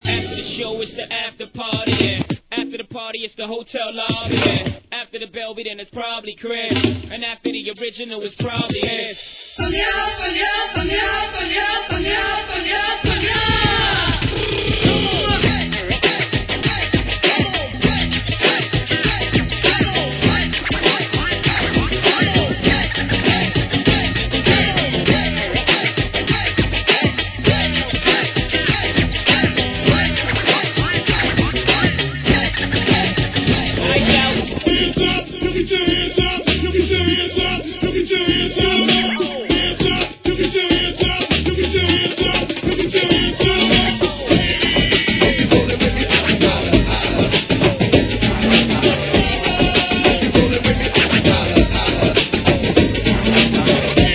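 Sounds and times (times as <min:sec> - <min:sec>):
hip hop bhangra music: 0:00.0 - 0:54.1.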